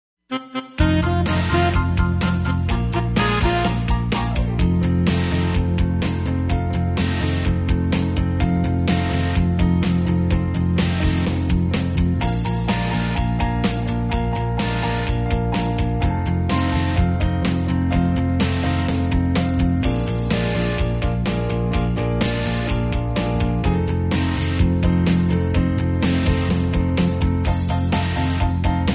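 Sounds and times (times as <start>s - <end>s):
happy square dance rhythm track: 0.8s - 28.9s.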